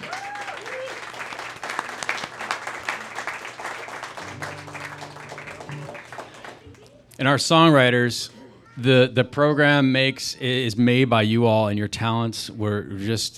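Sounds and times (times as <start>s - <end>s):
audience applause: 0.0s - 6.9s
speech: 7.2s - 13.3s.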